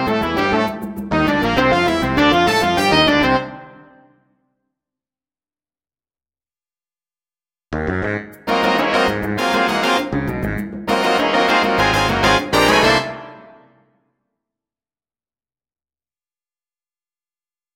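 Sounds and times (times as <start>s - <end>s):
drum set playing along to funk: 0.0s - 3.4s, 8.3s - 13.2s.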